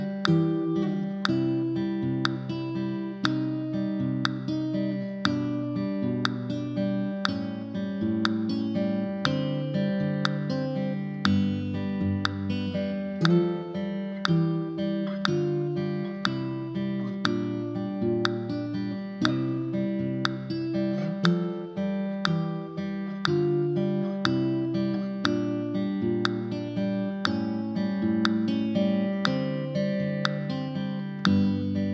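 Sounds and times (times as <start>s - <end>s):
guitar at 60 bpm: 0.0s - 31.9s.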